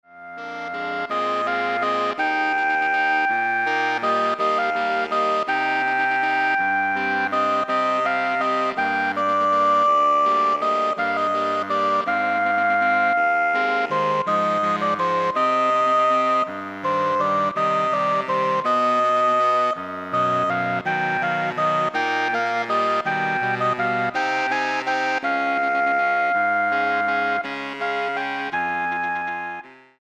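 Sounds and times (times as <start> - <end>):
saxophone ensemble: 0.2 - 29.9.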